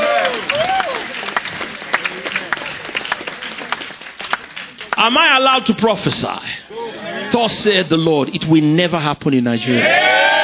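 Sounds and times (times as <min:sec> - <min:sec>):
audience clapping: 0:00.0 - 0:05.9
speech: 0:05.0 - 0:06.6, 0:07.3 - 0:10.0.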